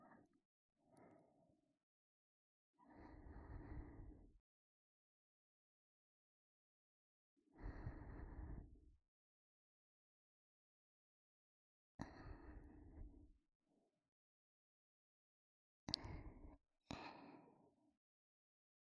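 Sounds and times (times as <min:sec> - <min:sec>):
ASMR breathing in the right ear: 0:02.8 - 0:04.2, 0:07.6 - 0:08.7, 0:12.0 - 0:13.1, 0:15.9 - 0:17.7.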